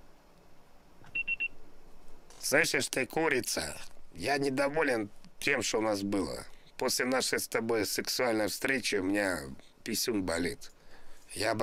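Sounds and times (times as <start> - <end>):
faint hiss: 0.0 - 11.6
voicemail beep: 1.1 - 1.6
speech: 2.5 - 11.6.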